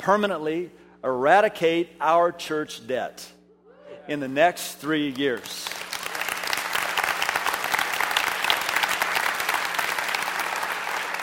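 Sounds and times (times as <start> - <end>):
speech: 0.0 - 3.4, 4.0 - 5.8
audience applause: 5.6 - 11.2.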